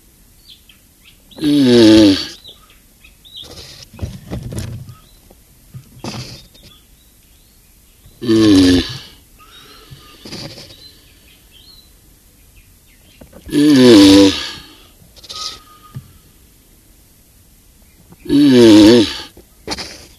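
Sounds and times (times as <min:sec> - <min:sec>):
Galapagos tortoise groaning call: 0:01.4 - 0:02.4, 0:03.4 - 0:05.0, 0:05.9 - 0:06.8, 0:08.2 - 0:11.3, 0:13.4 - 0:16.3, 0:18.2 - 0:20.1.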